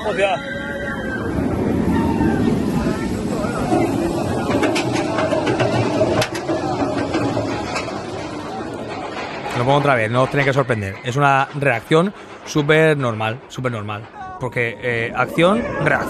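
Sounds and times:
speech: 0.0s - 1.1s, 9.6s - 16.0s
drop tower amusement ride launching: 0.0s - 16.0s.

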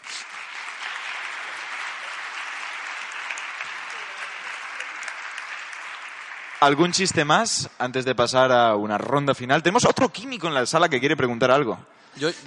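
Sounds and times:
audience applause: 0.0s - 7.6s
speech: 6.6s - 12.4s.

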